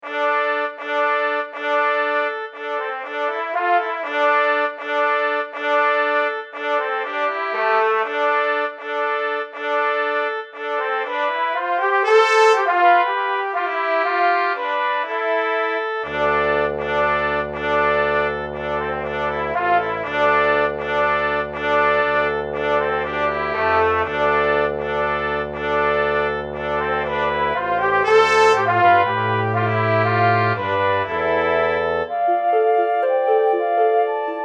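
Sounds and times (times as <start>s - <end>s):
brass instruments: 0.0s - 34.4s.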